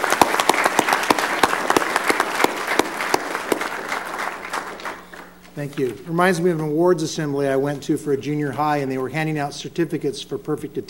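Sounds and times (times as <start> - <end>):
audience applause: 0.0 - 5.4
speech: 5.6 - 10.8.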